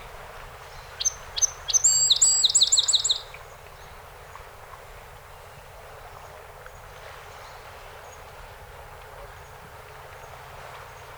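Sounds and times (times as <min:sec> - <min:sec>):
song sparrow singing: 0:01.0 - 0:03.3.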